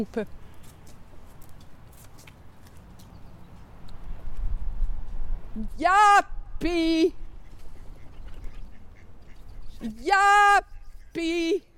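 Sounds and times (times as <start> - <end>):
speech: 0.0 - 0.4, 5.6 - 7.2, 9.8 - 11.7
duck quacking: 7.4 - 9.5.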